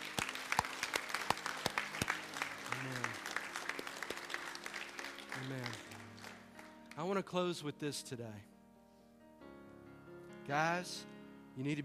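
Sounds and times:
audience clapping: 0:00.0 - 0:07.2
speech: 0:07.0 - 0:08.5, 0:10.5 - 0:11.8.

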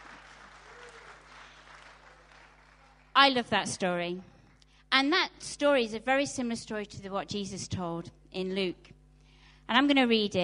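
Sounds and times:
audience applause: 0:00.0 - 0:03.2
speech: 0:03.2 - 0:04.3, 0:04.9 - 0:09.0, 0:09.7 - 0:10.4.

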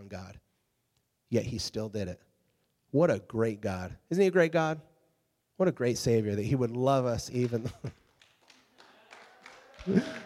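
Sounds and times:
speech: 0:00.1 - 0:00.4, 0:01.3 - 0:02.3, 0:02.9 - 0:04.9, 0:05.6 - 0:08.0, 0:09.8 - 0:10.2
hand clap: 0:07.3 - 0:10.2
laughter: 0:07.4 - 0:08.0, 0:08.8 - 0:10.2.

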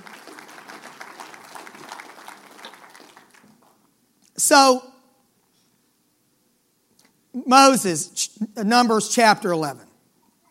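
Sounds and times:
audience clapping: 0:00.0 - 0:03.9
speech: 0:04.4 - 0:04.9, 0:07.5 - 0:09.9.

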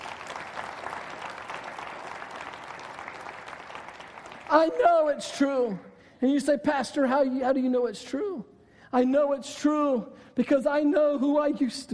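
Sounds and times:
audience clapping: 0:00.0 - 0:05.2
speech: 0:04.5 - 0:11.9.

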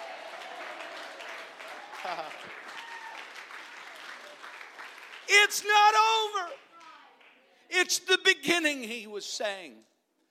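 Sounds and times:
audience clapping hands: 0:00.0 - 0:07.4
speech: 0:02.0 - 0:02.8, 0:05.3 - 0:06.6, 0:07.7 - 0:09.9.

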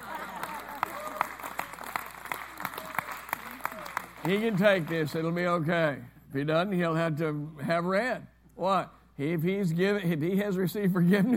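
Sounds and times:
audience applause: 0:00.0 - 0:05.3
speech: 0:04.2 - 0:11.3.

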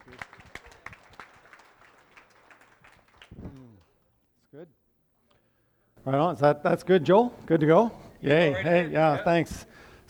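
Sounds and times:
faint audience applause greeting a director: 0:00.0 - 0:03.4
speech: 0:04.6 - 0:04.8, 0:06.0 - 0:10.0.

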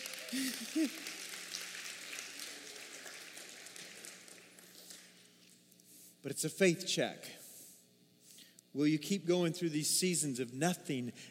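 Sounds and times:
audience applause: 0:00.0 - 0:05.2
speech: 0:00.3 - 0:01.2, 0:06.2 - 0:07.4, 0:08.7 - 0:11.2.

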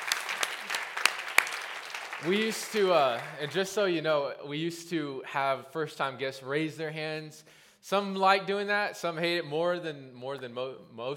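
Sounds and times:
audience applause: 0:00.0 - 0:03.8
speech: 0:02.2 - 0:11.1.

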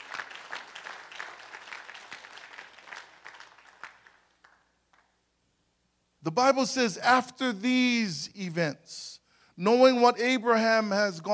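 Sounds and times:
crowd applause: 0:00.0 - 0:05.0
speech: 0:06.2 - 0:11.3.

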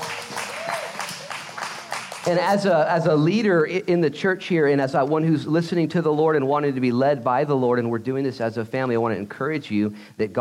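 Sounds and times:
audience applause: 0:00.0 - 0:02.5
speech: 0:02.3 - 0:10.3.

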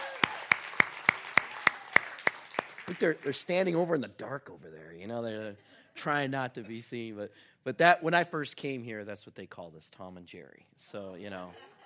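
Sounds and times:
hand claps welcoming a couple back: 0:00.0 - 0:03.1
speech: 0:02.9 - 0:11.7.

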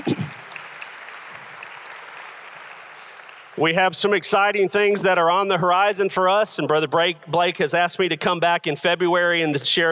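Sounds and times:
people clapping: 0:00.0 - 0:03.7
speech: 0:03.6 - 0:09.9.

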